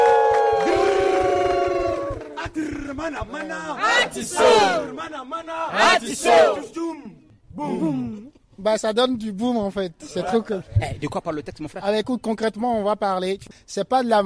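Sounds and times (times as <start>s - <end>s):
audience cheering and shouting: 0.0s - 4.9s
speech: 3.0s - 7.0s, 7.6s - 14.2s.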